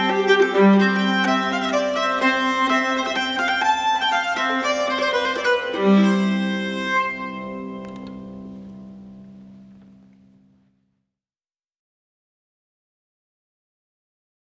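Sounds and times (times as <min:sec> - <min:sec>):
polska in G major: 0:00.0 - 0:09.6.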